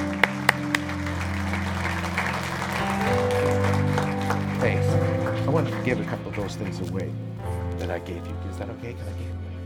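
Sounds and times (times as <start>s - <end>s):
church audience clapping hands: 0.0s - 8.0s
speech: 5.6s - 9.5s.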